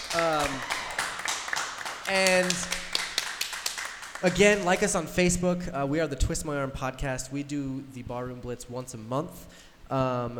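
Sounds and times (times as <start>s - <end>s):
small hand clap: 0.0s - 4.4s
speech: 2.1s - 2.8s, 4.2s - 10.3s.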